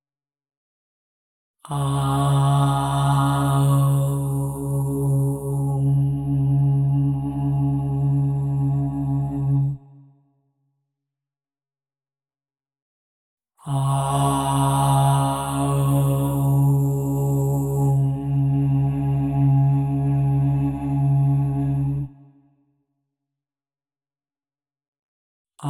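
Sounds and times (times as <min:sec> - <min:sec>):
OM tone at 136.1 Hz: 0:01.7 - 0:09.8, 0:13.7 - 0:22.1.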